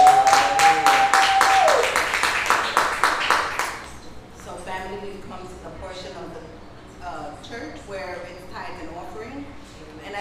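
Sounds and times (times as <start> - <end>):
audience applause: 0.0 - 3.9.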